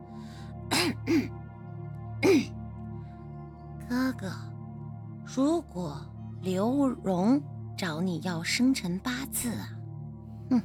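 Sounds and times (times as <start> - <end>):
voice performing a little girl's dry cough: 0.7 - 1.3, 2.2 - 2.5
speech: 0.8 - 1.4, 4.2 - 4.5, 5.3 - 9.8, 10.5 - 10.6.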